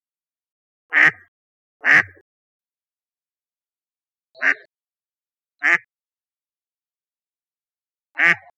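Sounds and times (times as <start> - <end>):
mallard raspy quacks: 0.9 - 2.2, 4.4 - 4.7, 5.6 - 5.9, 8.2 - 8.5.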